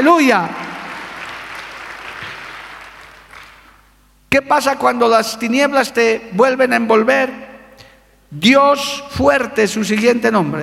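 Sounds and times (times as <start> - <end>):
speech: 0.0 - 0.6, 4.3 - 7.4, 8.3 - 10.6
audience applauding: 0.4 - 3.8.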